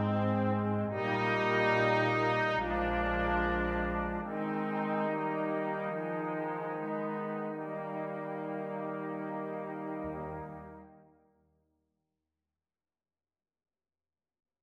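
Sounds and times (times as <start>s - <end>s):
anthem music: 0.0s - 11.0s.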